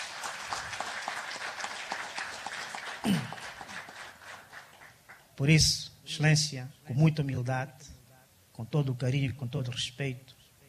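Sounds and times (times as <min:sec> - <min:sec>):
audience applause: 0:00.0 - 0:05.3
speech: 0:05.4 - 0:07.9, 0:08.6 - 0:10.4.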